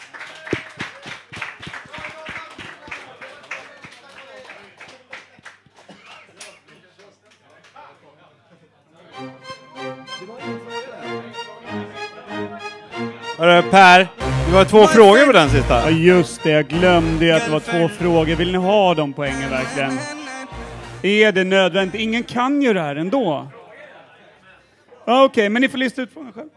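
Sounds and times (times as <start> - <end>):
audience applause: 0.0 - 7.6
upbeat tonal music jingle: 9.2 - 22.5
speech: 13.4 - 20.2, 21.0 - 23.6, 25.1 - 26.5.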